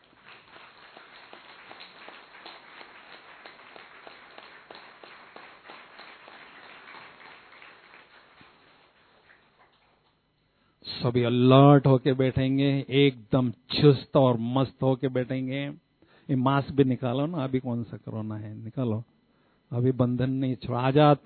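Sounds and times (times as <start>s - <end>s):
audience clapping: 0.0s - 10.2s
speech: 11.0s - 19.1s, 19.7s - 21.2s.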